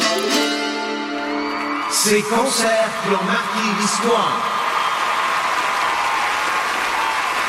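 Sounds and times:
audience applause: 0:01.0 - 0:07.4
speech: 0:02.0 - 0:04.6.

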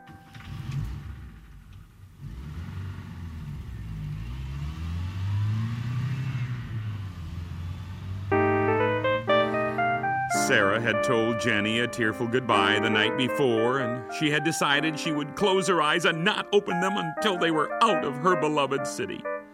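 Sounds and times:
car engine revving and driving off: 0:00.3 - 0:08.4
bright tonal sound: 0:08.3 - 0:14.2
speech: 0:10.5 - 0:19.3.

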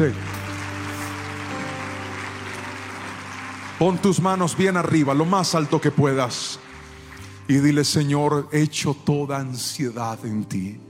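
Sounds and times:
speech: 0:00.0 - 0:00.2, 0:03.8 - 0:06.7, 0:07.5 - 0:10.8
audience clapping hands: 0:00.0 - 0:08.2.

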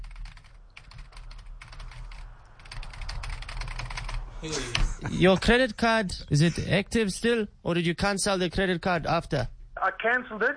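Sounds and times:
computer keyboard typing to pull up a file: 0:00.0 - 0:04.8
low hum: 0:00.0 - 0:10.5
speech: 0:04.4 - 0:10.5.

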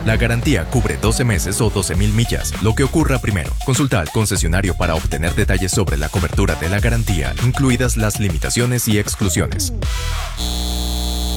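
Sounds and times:
speech: 0:00.0 - 0:11.0
data centre electrical hum: 0:10.4 - 0:11.3.

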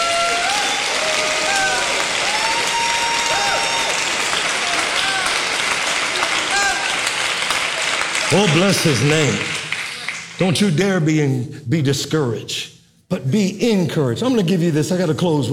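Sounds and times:
scattered voices and cheers: 0:00.0 - 0:10.5
audience clapping hands: 0:00.0 - 0:10.8
speech: 0:08.3 - 0:09.6, 0:10.4 - 0:15.5.

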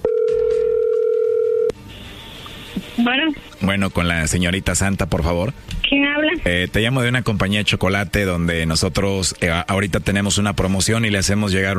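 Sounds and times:
telephone tone: 0:00.0 - 0:01.8
faint hiss of an open line: 0:01.8 - 0:03.8
speech: 0:03.0 - 0:11.7.

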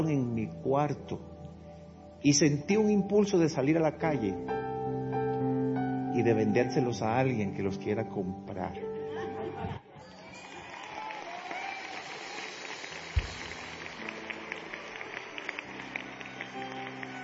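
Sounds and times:
speech: 0:00.0 - 0:01.3, 0:02.2 - 0:05.0, 0:06.1 - 0:09.8
audience applause: 0:10.0 - 0:17.2.

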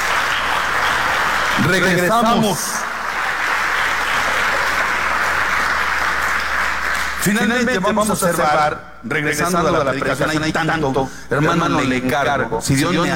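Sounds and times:
audience applause: 0:00.0 - 0:07.4
speech: 0:01.6 - 0:02.8, 0:07.2 - 0:13.1.

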